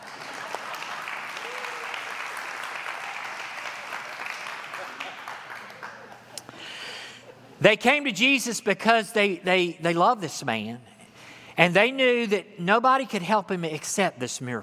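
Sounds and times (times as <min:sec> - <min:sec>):
audience applause: 0:00.0 - 0:06.3
speech: 0:07.6 - 0:10.9, 0:11.6 - 0:14.6.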